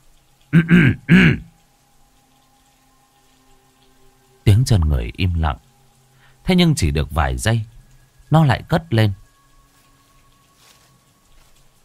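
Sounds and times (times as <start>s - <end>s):
speech: 0.5s - 1.4s, 4.7s - 5.7s, 6.4s - 7.7s, 8.3s - 9.2s
man clearing his throat: 0.6s - 1.5s.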